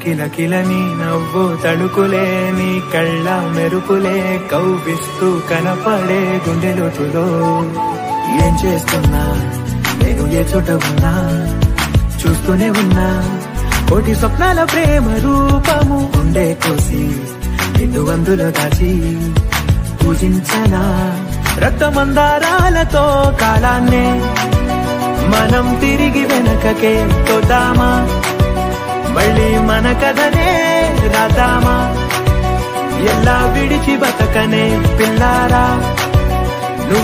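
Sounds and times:
Telugu love background music ringtone: 0.2 - 37.0.

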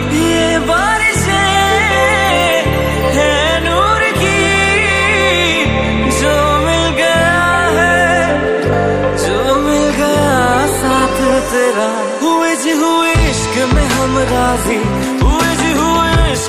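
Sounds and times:
Hindi song ringtone: 0.1 - 16.3.

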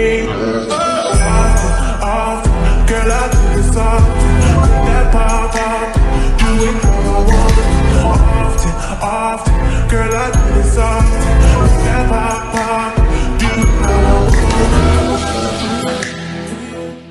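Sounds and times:
slowed remix ringtone: 0.1 - 15.9.

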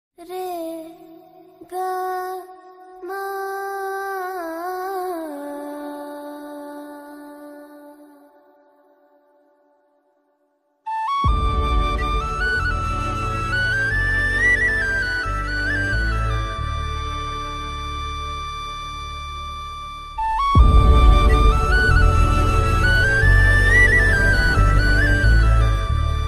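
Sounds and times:
interval background music: 10.9 - 26.2.

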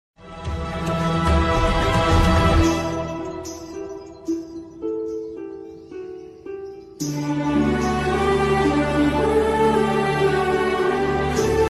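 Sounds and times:
sad instrumental music: 0.2 - 11.6.

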